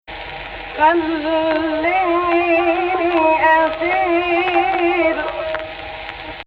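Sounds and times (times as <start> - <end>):
voice singing AHH in Egypt Rast: 0.8 - 5.9.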